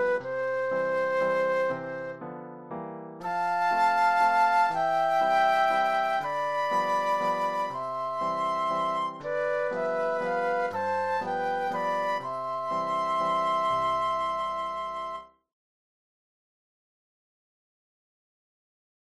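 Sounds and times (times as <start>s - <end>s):
flute duet: 0.0s - 2.5s, 3.2s - 15.4s
piano: 0.0s - 15.4s.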